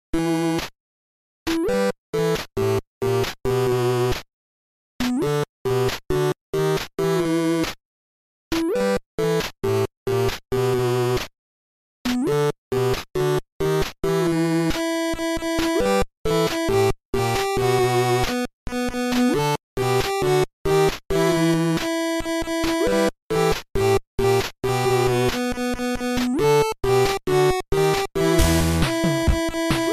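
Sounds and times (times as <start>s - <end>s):
8-bit chiptune: 1.5s - 4.2s, 5.0s - 7.8s, 8.5s - 11.3s, 12.1s - 29.9s.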